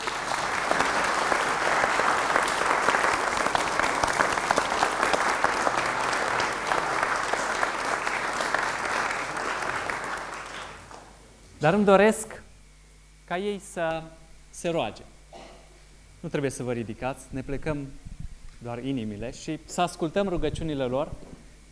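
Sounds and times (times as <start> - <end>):
audience applause: 0.0 - 11.2
speech: 11.6 - 12.4, 13.3 - 15.1, 16.2 - 18.0, 18.6 - 21.2.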